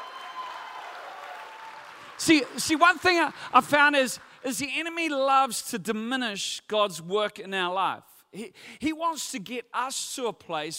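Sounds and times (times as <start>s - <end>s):
audience clapping in praise: 0.0s - 5.0s
speech: 2.2s - 10.7s.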